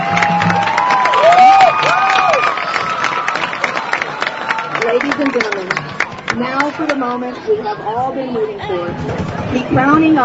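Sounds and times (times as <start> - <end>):
crowd applause: 0.0 - 7.1
speech: 6.8 - 10.2.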